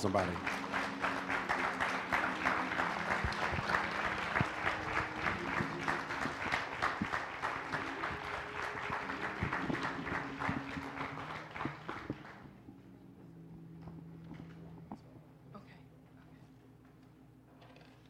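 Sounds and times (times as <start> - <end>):
audience applause, hand clapping: 0.0 - 12.6.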